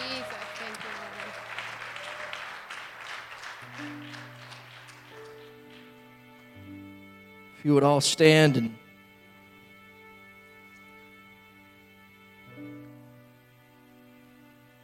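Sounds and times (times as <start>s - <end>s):
audience clapping: 0.0s - 7.1s
speech: 7.6s - 8.8s.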